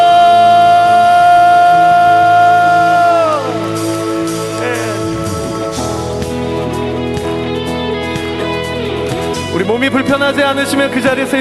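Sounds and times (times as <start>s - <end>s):
audience clapping and cheering: 0.0s - 6.3s
long steady held chord: 0.0s - 9.2s
speech: 10.2s - 11.3s.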